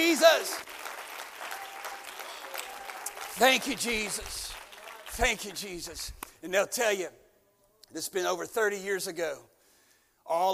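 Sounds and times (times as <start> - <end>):
audience clapping: 0.0 - 6.4
speech: 0.2 - 0.7, 3.4 - 4.5, 5.2 - 7.2, 7.9 - 9.5, 10.3 - 10.5.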